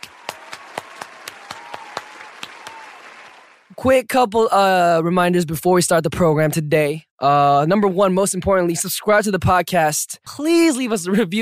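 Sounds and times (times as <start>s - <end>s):
clapping applause: 0.0s - 3.8s
speech: 3.8s - 11.4s.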